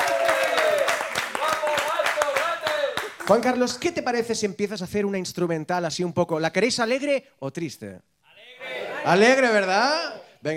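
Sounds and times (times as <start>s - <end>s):
audience clapping: 0.0s - 3.8s
speech: 3.3s - 10.5s.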